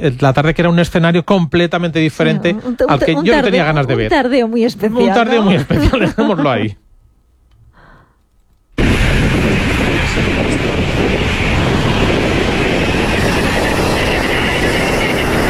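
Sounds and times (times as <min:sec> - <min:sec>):
speech: 0:00.0 - 0:06.8
laughter: 0:02.0 - 0:06.8
wind in the Guajira desert of Colombia: 0:08.8 - 0:15.4.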